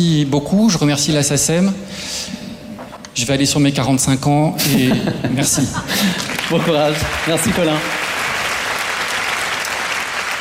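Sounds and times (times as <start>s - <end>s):
speech: 0.0s - 2.4s, 3.2s - 8.0s
audience applause at an award ceremony: 6.0s - 10.3s.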